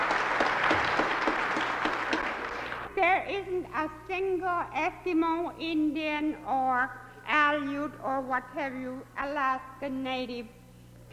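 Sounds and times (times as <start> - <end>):
audience clapping for Alaska Native singers and dancers: 0.0 - 3.0
speech: 3.1 - 11.1.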